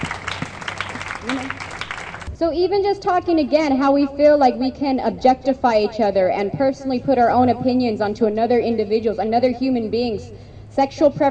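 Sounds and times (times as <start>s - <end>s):
audience applauding: 0.0s - 2.3s
crowd whooping: 0.0s - 2.3s
speech: 2.4s - 11.2s.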